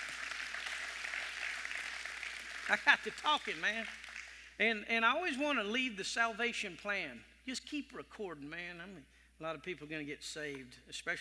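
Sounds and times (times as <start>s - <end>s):
faint round of audience applause: 0.0s - 4.6s
speech: 2.7s - 4.0s, 4.6s - 11.1s.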